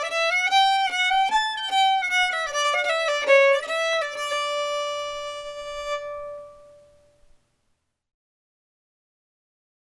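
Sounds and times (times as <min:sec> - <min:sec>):
fiddle playing a march: 0:00.0 - 0:07.1.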